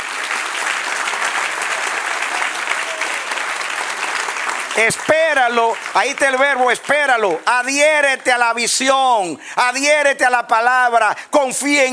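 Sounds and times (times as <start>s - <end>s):
applause: 0.0s - 9.2s
speech: 4.8s - 11.9s.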